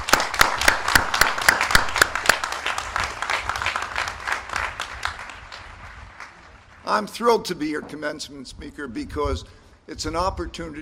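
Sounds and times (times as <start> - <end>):
audience applause: 0.0 - 6.9
speech: 6.9 - 10.8.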